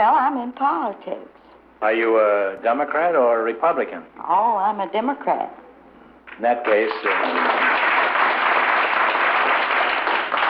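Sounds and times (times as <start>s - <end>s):
speech: 0.0s - 5.6s, 6.4s - 7.6s
crowd clapping: 6.3s - 10.4s.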